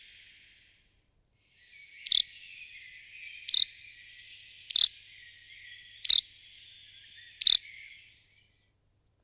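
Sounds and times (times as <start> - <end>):
common chaffinch Fringilla coelebs calls: 1.6 - 8.4.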